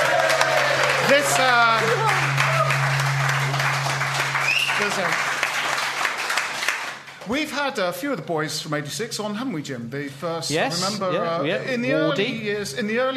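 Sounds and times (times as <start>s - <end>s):
cheering and whooping voices: 0.0s - 5.2s
audience applause: 0.0s - 7.4s
speech: 1.1s - 2.3s, 4.8s - 5.3s, 7.3s - 13.1s.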